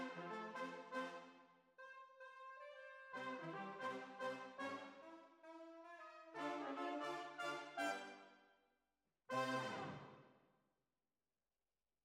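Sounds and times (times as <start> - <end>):
horns: 0.0 - 8.3, 9.3 - 10.2.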